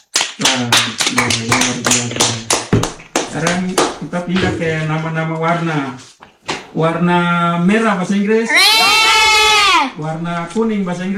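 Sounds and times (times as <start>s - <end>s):
classroom rhythmic hand clapping: 0.0s - 4.4s
speech: 0.5s - 2.4s, 3.4s - 9.0s, 10.0s - 11.1s.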